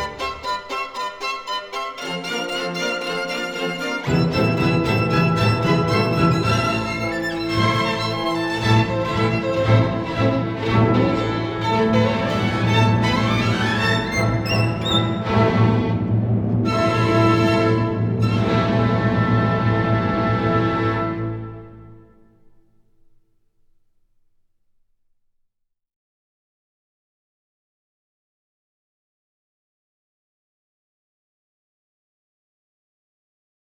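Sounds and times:
violin concerto in A minor, allegro con fuoco: 0.0s - 22.3s.

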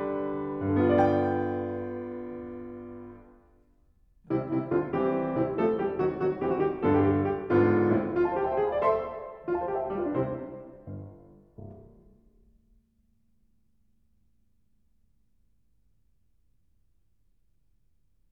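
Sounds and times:
small vivace piano piece: 0.0s - 3.6s, 4.2s - 12.5s.

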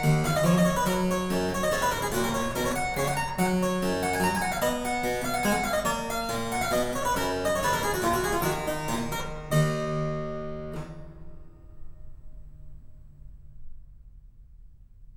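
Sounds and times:
hornpipe in E minor on harpsichord: 0.0s - 9.6s.

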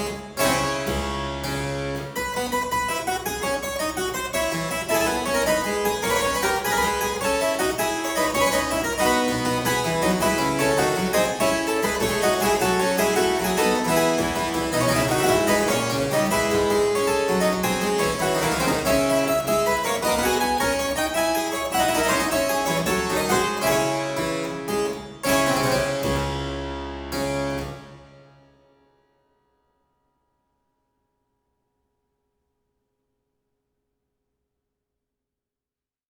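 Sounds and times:
harpsichord piece: 0.0s - 28.6s.

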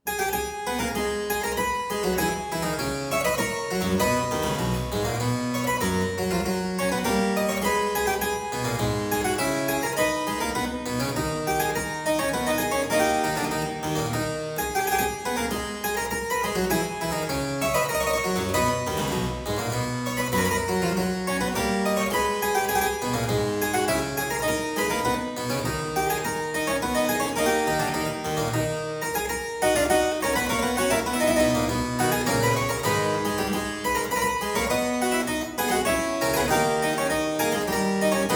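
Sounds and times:
harpsichord playing a courante in A minor: 0.0s - 38.3s.

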